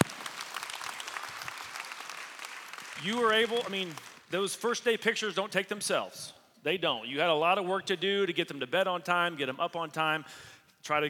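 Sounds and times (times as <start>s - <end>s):
audience applause for parents: 0.0s - 4.3s
speech: 3.0s - 11.0s.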